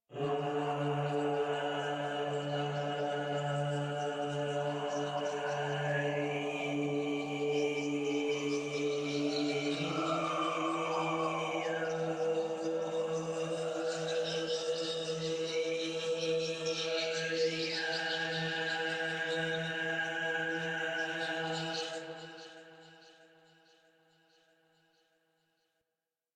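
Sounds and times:
choir singing: 0.1s - 22.8s.

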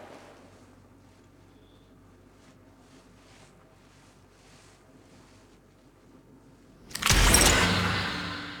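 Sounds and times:
blade against a throat: 6.9s - 8.5s.

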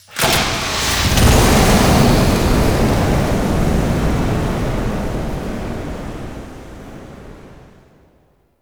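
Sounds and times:
Nokko Visions flamethrower starting: 0.0s - 6.8s.

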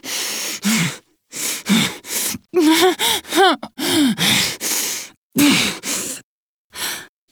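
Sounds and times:
exertion sounds: 0.6s - 5.9s.

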